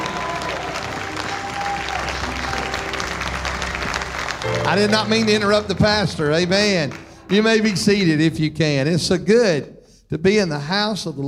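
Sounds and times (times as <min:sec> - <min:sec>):
audience clapping hands in praise: 0:00.0 - 0:08.4
speech: 0:04.7 - 0:11.2.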